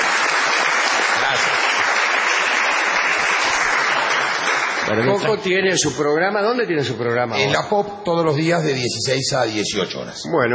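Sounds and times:
audience applause: 0.0 - 5.4
speech: 4.9 - 10.5.

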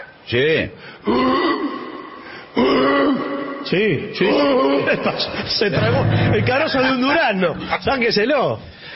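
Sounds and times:
speech: 0.3 - 1.8, 3.7 - 8.9
person imitating a strained grunt of exertion: 1.0 - 3.6.

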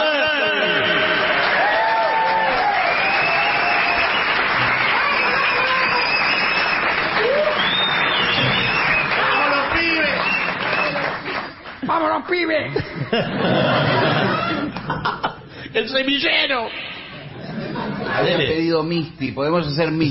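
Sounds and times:
audience applause: 0.6 - 12.0
laughter: 12.6 - 15.6, 17.1 - 18.7
speech: 15.9 - 16.9, 18.2 - 20.0.

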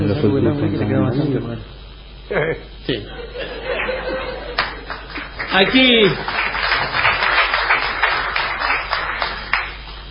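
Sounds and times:
speech: 0.2 - 3.7, 5.5 - 6.9
laughter: 3.1 - 5.3
audience applause: 4.4 - 10.0.

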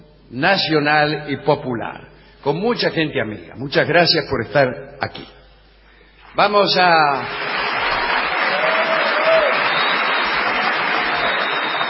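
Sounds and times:
speech: 0.3 - 5.4, 6.4 - 7.5
audience ovation applause: 7.3 - 11.8.

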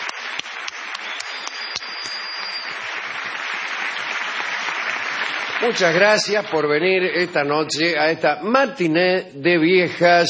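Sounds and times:
audience applause: 0.0 - 7.4
speech: 5.6 - 10.2.

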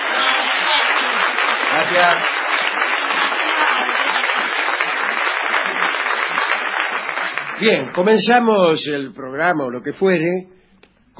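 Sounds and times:
audience ovation applause: 0.0 - 8.3
speech: 1.8 - 2.4, 7.6 - 10.6.

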